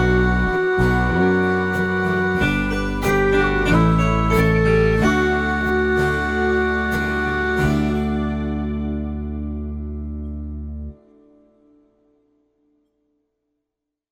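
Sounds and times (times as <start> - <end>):
hymn backing music: 0.0 - 10.4.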